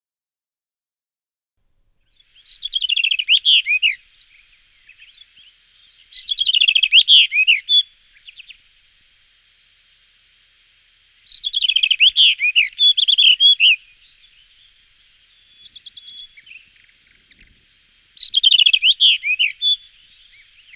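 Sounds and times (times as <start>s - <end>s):
common rock thrush singing: 2.2s - 20.7s.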